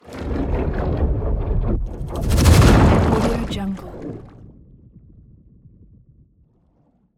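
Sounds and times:
water bubbly sci-fi passby: 0.0 - 4.6.

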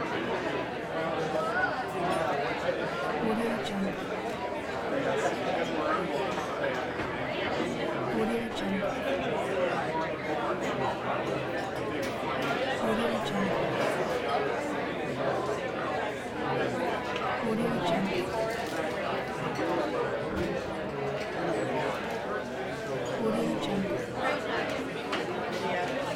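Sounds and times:
bar or restaurant ambience: 0.0 - 26.1.

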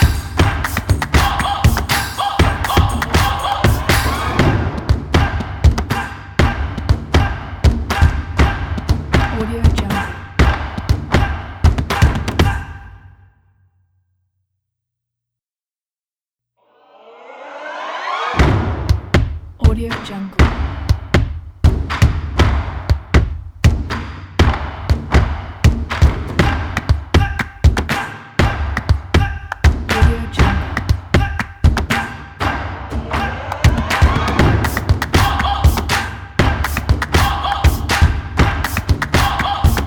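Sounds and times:
tribal sport percussion: 0.0 - 13.2, 18.4 - 39.8.

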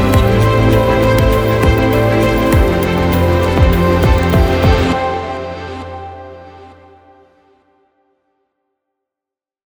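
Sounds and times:
inspiring piano music for an advertisement: 0.0 - 7.5.

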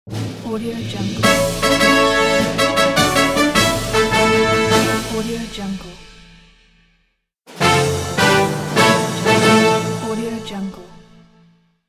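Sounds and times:
fanfare: 1.2 - 6.6, 7.6 - 10.8.

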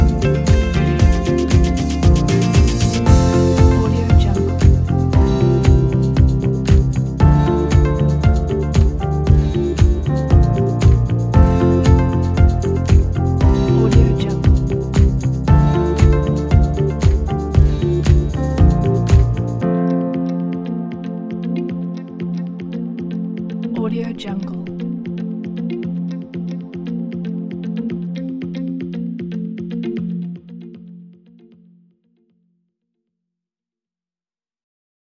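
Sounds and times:
inspiring presentation music: 0.0 - 23.8.

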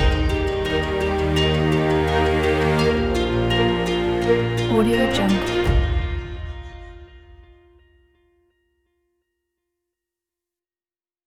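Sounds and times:
epic trailer music: 0.0 - 7.6.

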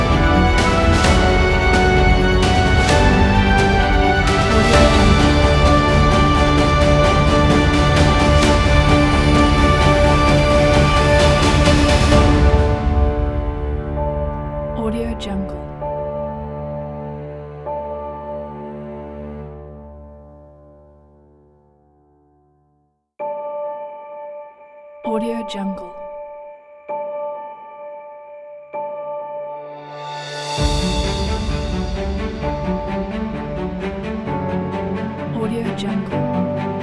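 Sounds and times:
inspiring and emotional epic orchestral music: 0.0 - 20.8, 29.7 - 36.8.

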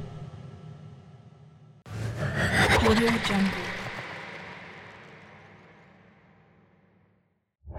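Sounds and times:
synth transition whoosh: 1.9 - 6.1.

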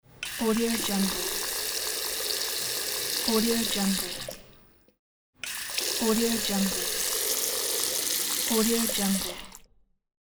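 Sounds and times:
tap water flowing: 0.2 - 4.4, 5.4 - 9.7.

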